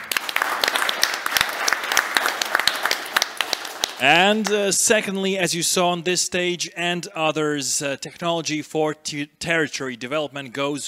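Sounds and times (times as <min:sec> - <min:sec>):
applause: 0:00.0 - 0:04.7
speech: 0:04.0 - 0:10.8.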